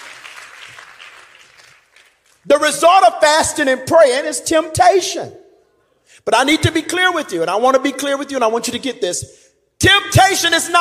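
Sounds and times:
audience clapping hands: 0.0s - 2.5s
speech: 2.4s - 5.4s, 6.2s - 10.8s.

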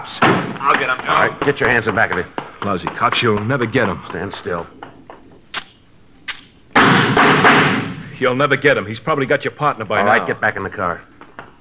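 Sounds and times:
speech: 0.0s - 4.8s, 8.2s - 11.2s
gunshots: 5.5s - 8.2s.

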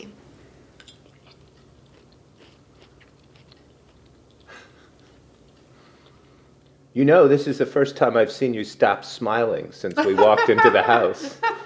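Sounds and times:
person chewing a meat dish: 0.7s - 6.8s
soft breathing: 4.5s - 6.6s
speech: 7.0s - 11.4s
laughter: 10.0s - 11.6s.

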